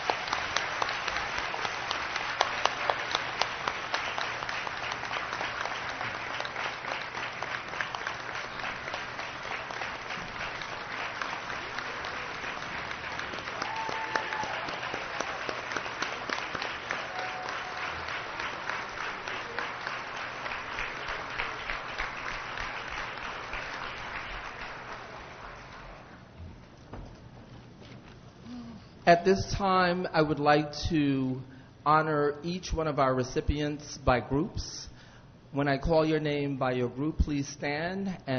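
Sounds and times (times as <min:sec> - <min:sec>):
audience applause: 0:00.0 - 0:26.2
speech: 0:29.1 - 0:34.9, 0:35.6 - 0:38.3.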